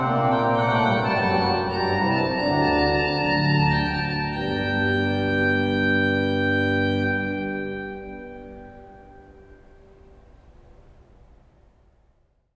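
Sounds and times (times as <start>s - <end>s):
cathedral organ playing in Sion, Valais: 0.0s - 10.2s.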